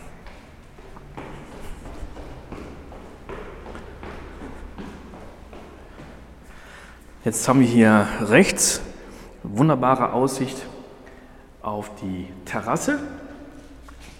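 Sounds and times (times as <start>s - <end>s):
footsteps walking down a stairwell: 0.0s - 7.7s
speech: 7.2s - 8.9s, 9.6s - 10.7s, 11.6s - 13.2s.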